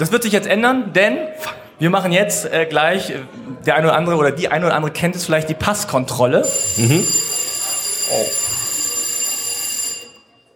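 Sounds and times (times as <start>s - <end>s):
speech: 0.0s - 7.4s, 8.1s - 8.6s
theater bell ringing: 6.4s - 10.5s.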